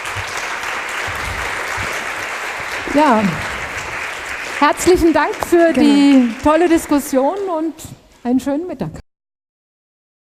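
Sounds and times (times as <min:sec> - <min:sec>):
audience applause closing a panel discussion: 0:00.0 - 0:07.7
speech: 0:03.0 - 0:03.5, 0:04.6 - 0:09.0.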